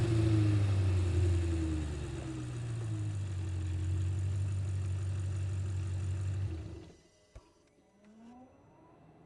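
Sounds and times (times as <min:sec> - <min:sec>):
Audi RS4 engine recorded onboard while starting, driving, reversing and stopping: 0:00.0 - 0:07.0.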